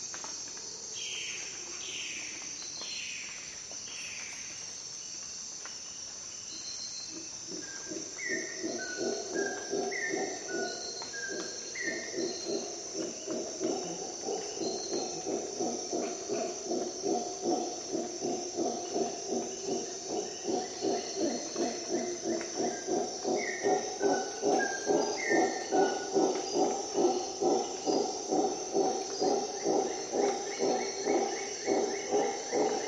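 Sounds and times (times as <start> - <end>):
shrill insect hum: 0.0 - 32.8
howler monkey chorus roaring: 8.0 - 32.8.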